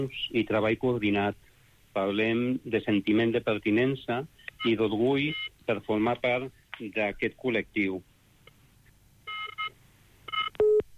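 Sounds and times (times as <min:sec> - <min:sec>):
speech: 0:00.0 - 0:08.1
telephone keypad tones while calling into a radio show: 0:09.3 - 0:09.7, 0:10.3 - 0:10.9.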